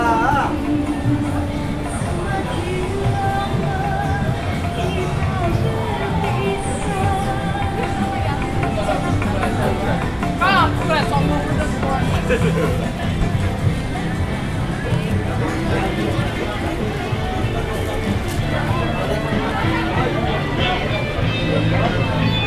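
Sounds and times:
crowd chatter of Indonesian workers at the east exit of Taipei Station: 0.0s - 22.4s
calls and laughs: 11.6s - 13.4s.

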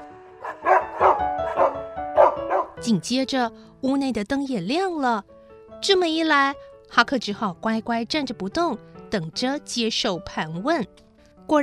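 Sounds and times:
pack of dogs barking fiercely: 0.4s - 2.8s
speech: 2.8s - 11.6s.

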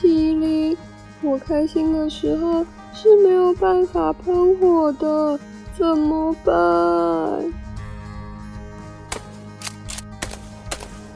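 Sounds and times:
speech: 1.2s - 7.6s
gunshots: 9.1s - 11.1s.

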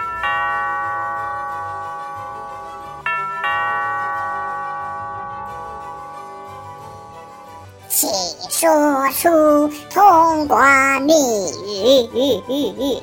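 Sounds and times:
doorbell ringing: 0.0s - 7.8s
speech: 8.6s - 13.0s.

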